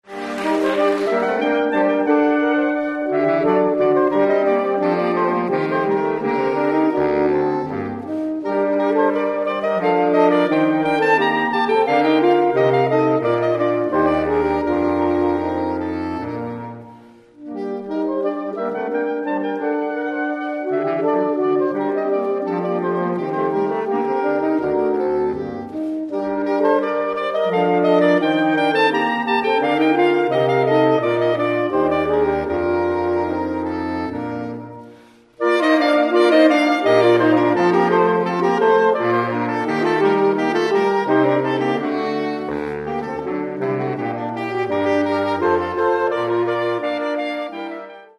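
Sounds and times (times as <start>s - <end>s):
classic saxophone jazz: 0.0s - 48.1s.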